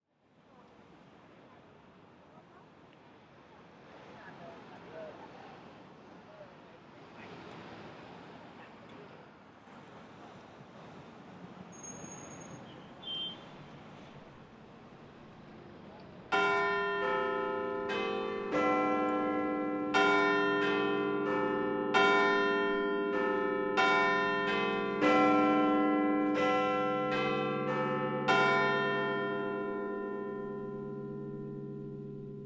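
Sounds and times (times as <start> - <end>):
chimes of Big Ben: 16.3 - 32.4.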